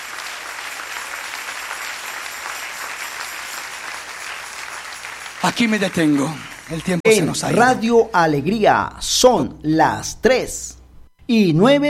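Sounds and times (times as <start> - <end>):
audience applause: 0.0 - 7.8
speech: 5.4 - 11.8.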